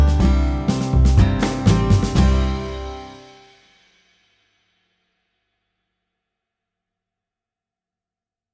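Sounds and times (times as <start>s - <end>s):
ukulele without melody: 0.0s - 3.2s.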